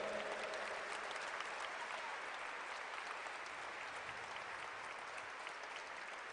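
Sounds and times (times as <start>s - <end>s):
audience applauding: 0.0s - 6.3s.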